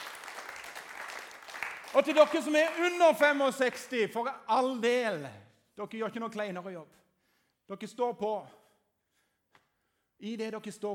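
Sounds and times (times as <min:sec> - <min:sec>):
audience applause: 0:00.0 - 0:03.1
speech: 0:02.0 - 0:07.0, 0:07.7 - 0:08.6, 0:10.2 - 0:10.9.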